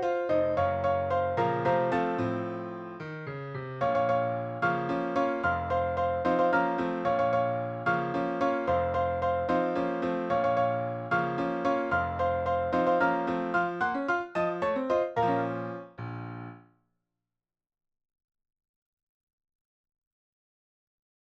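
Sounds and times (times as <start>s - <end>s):
piano piece: 0.0s - 16.7s.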